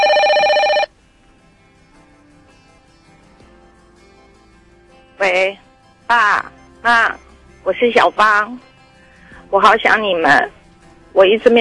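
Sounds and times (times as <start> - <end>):
bright electronic bell ringing: 0.0 - 0.9, 6.1 - 8.7
speech: 5.2 - 8.7, 9.5 - 11.6.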